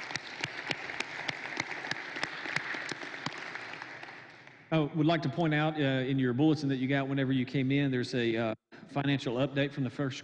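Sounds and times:
audience applause: 0.0 - 4.6
speech: 4.7 - 10.2.

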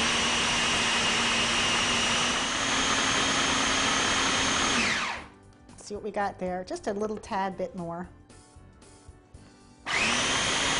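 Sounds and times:
food processor pureeing vegetables with a little liquid, lid on: 0.0 - 5.3, 9.9 - 10.7
speech: 5.9 - 8.2.

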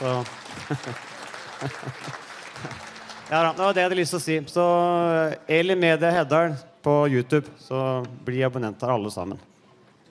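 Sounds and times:
audience clapping: 0.0 - 4.5
laughter: 0.2 - 2.8
speech: 0.2 - 9.5.

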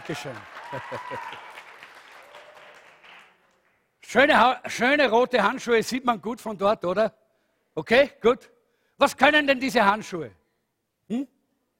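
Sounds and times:
audience applause: 0.0 - 3.8
speech: 0.1 - 1.5, 4.1 - 7.2, 7.8 - 10.4, 11.1 - 11.3.

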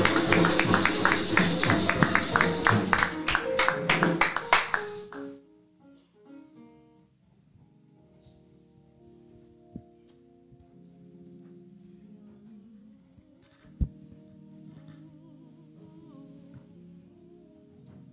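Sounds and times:
audience clapping hands: 0.0 - 5.3.

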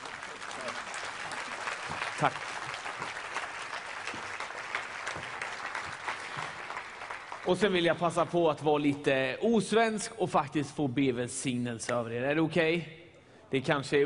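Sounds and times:
audience applause: 0.0 - 8.4
speech: 2.2 - 2.6, 7.5 - 14.0.

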